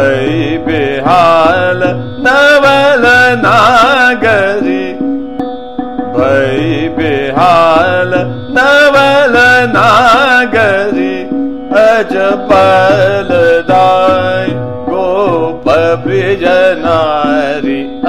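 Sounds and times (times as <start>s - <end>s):
chota khyal singing in trital: 0.0s - 18.0s.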